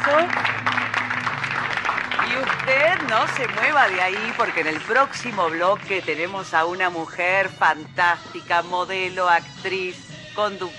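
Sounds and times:
studio audience applause: 0.0 - 6.3
speech: 2.7 - 10.7.

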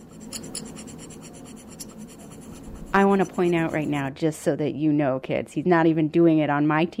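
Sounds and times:
dental scraper tool scraping on table: 0.0 - 4.1
speech: 2.9 - 6.9.

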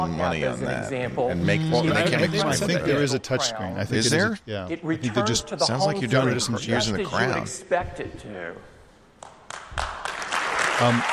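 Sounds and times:
speech: 0.0 - 8.7, 10.8 - 11.1
audience applause: 9.5 - 11.1.

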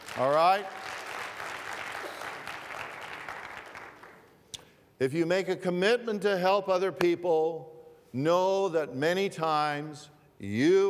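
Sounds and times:
weak audience applause: 0.0 - 4.5
speech: 0.2 - 0.9, 5.0 - 10.8.

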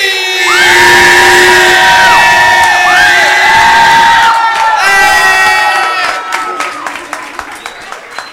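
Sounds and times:
audience cheering and whooping at an evening tribute event: 0.2 - 8.0.

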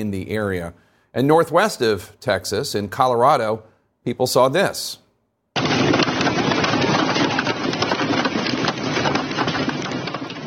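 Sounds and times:
speech: 0.0 - 5.0
heavy hail falling: 5.6 - 10.4.

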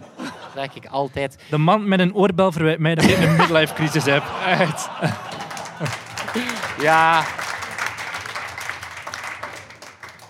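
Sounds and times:
laughter: 0.0 - 1.2, 3.0 - 8.8
speech: 0.6 - 7.4
hand clapping: 5.0 - 10.2.

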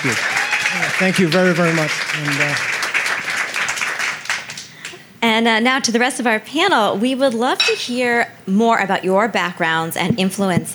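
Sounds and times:
speech: 0.0 - 2.8, 5.4 - 10.7
audience applause: 0.0 - 4.9.

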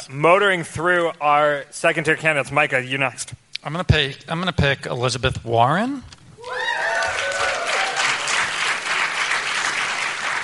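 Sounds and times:
speech: 0.0 - 6.6
whoops and cheers: 6.4 - 8.6
audience applause: 6.5 - 10.4.

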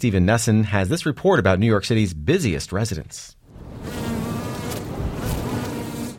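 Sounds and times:
speech: 0.0 - 4.0
honey bees buzzing: 3.6 - 6.1.

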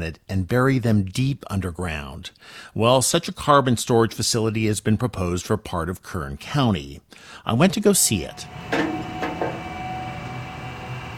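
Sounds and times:
speech: 0.0 - 9.1
oil pumps running: 8.4 - 11.1
clanking knocks: 8.7 - 9.8.

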